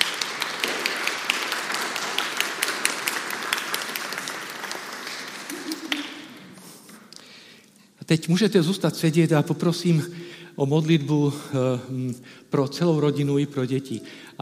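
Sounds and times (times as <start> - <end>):
audience applauding for two children: 0.0 - 6.6
speech: 8.1 - 14.4.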